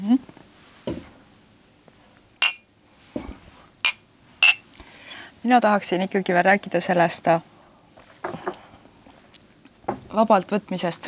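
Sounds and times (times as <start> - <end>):
glasses clinking in a toast: 2.4 - 2.7, 3.9 - 4.8
speech: 5.4 - 7.5, 10.2 - 11.0.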